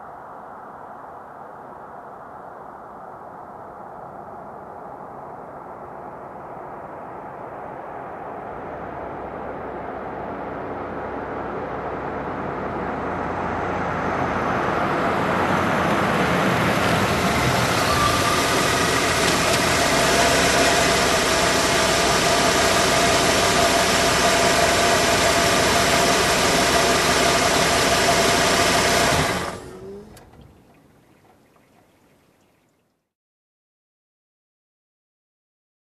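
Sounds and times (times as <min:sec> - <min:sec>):
car approaching and parking: 0:07.5 - 0:31.9.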